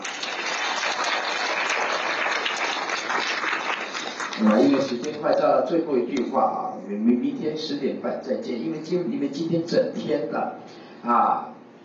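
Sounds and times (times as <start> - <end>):
audience applauding in praise of Buddhist monastics at a Chinese teaching: 0.0 - 5.1
speech: 4.4 - 11.5.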